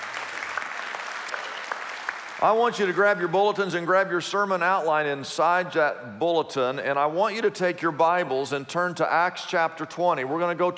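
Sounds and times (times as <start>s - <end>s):
audience applause: 0.0s - 3.0s
speech: 2.4s - 10.7s.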